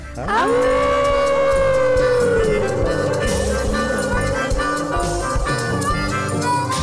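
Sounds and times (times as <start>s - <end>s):
howl: 0.2s - 6.7s.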